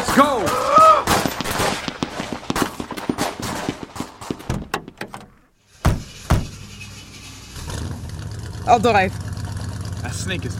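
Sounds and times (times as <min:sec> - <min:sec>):
gunshots: 0:00.0 - 0:04.5
speech: 0:00.2 - 0:00.4, 0:08.7 - 0:09.2, 0:10.1 - 0:10.5.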